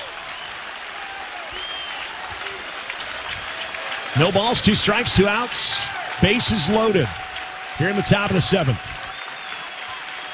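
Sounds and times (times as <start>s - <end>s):
baseball crowd cheering and clapping: 0.0s - 10.3s
faint whistles: 1.5s - 2.2s, 9.0s - 10.3s
speech: 4.1s - 7.2s, 7.8s - 9.0s.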